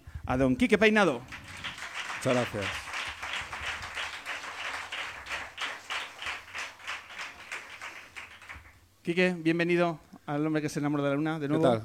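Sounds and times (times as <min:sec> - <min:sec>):
speech: 0:00.3 - 0:01.4, 0:02.2 - 0:02.8, 0:09.0 - 0:11.8
crowd applauding: 0:01.2 - 0:08.8.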